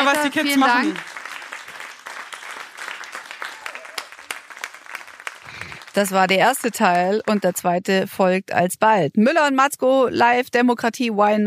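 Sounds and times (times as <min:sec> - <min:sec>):
live audience applause: 0:00.0 - 0:07.8
speech: 0:00.1 - 0:01.1, 0:06.0 - 0:11.4.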